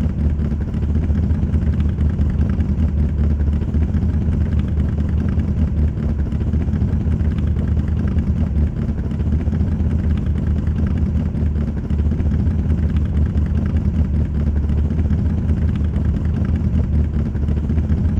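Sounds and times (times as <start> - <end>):
cars idling: 0.0 - 18.1.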